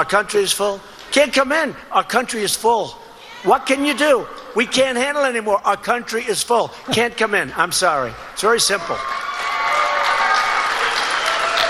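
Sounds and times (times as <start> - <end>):
speech: 0.0 - 9.2
audience applauding at political speech: 8.2 - 11.6.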